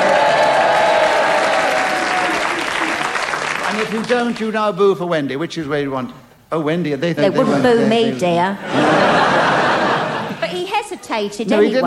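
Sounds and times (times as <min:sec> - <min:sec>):
studio audience cheering and applauding: 0:00.0 - 0:04.4
speech: 0:03.9 - 0:09.6, 0:10.5 - 0:11.8
laughter: 0:08.6 - 0:10.7.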